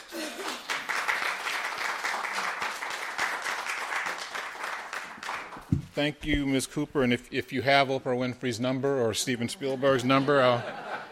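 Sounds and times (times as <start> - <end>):
audience applause welcoming an author at a book event: 0.0 - 5.7
speech: 6.0 - 10.8
laughter: 9.4 - 11.1.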